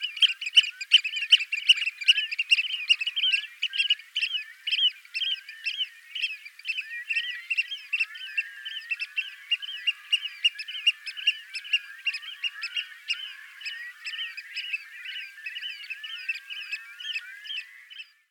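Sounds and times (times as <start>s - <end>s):
Eurasian oystercatcher singing: 0.0s - 18.2s.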